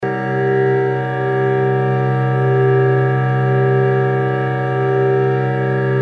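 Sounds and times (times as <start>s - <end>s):
microtonal variations of the all-interval chord: 0.0s - 6.0s.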